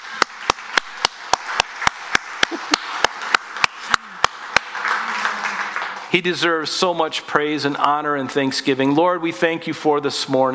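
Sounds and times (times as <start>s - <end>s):
audience clapping in unison: 0.0s - 6.6s
crowd murmuring: 2.4s - 6.8s
speech: 6.1s - 10.5s.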